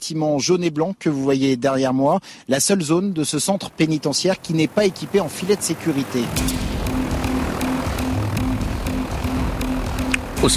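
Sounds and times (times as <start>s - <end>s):
speech: 0.1s - 6.9s
helicopter rotor and engine: 2.8s - 10.5s.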